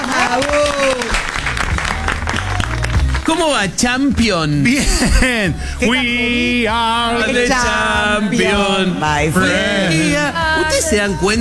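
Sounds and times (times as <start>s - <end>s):
laughter: 0.0s - 3.2s, 4.2s - 11.1s
applause: 0.0s - 3.7s
speech: 0.3s - 0.9s, 3.3s - 11.3s.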